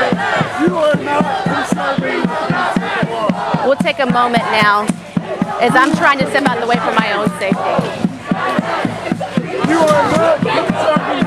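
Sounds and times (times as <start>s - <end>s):
crowd of protesting students chanting and screaming: 0.0s - 11.2s
speech: 3.9s - 5.0s, 5.6s - 8.8s.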